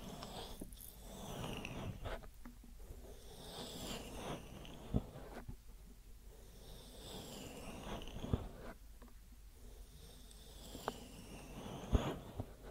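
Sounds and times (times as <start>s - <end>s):
rubbing and rustling against the microphone: 0.0s - 5.7s, 7.0s - 9.2s, 10.6s - 12.7s.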